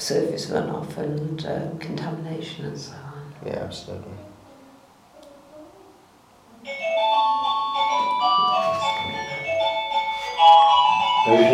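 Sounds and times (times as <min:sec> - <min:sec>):
speech: 0:00.1 - 0:04.3, 0:11.3 - 0:11.5
doorbell playing a melody ringtone: 0:06.6 - 0:11.5.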